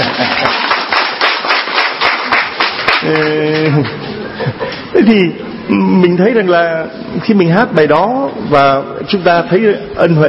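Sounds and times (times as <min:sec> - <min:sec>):
laughter: 0:00.0 - 0:00.8, 0:03.4 - 0:05.0
audience at a church talk clapping along with a Christmas song: 0:00.0 - 0:04.0
speech: 0:05.1 - 0:10.2.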